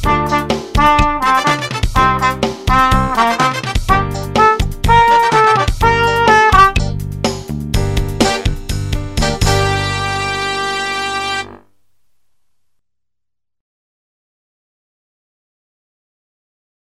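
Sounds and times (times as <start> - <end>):
funky music with drum break: 0.0 - 11.5.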